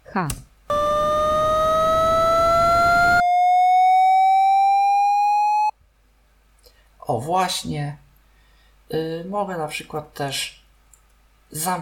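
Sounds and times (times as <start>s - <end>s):
noise: 0.0s - 11.8s
speech: 0.2s - 0.5s, 7.3s - 8.0s, 8.9s - 10.6s, 11.5s - 11.8s
tone marking left side: 0.7s - 5.7s.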